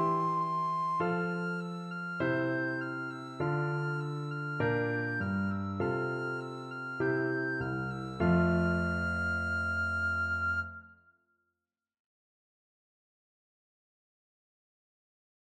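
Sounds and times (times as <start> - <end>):
recorder playing a march: 0.0 - 10.8.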